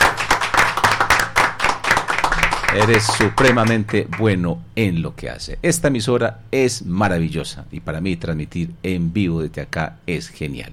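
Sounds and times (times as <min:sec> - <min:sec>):
studio audience applause at a live radio broadcast: 0:00.0 - 0:04.4
speech: 0:02.7 - 0:10.7.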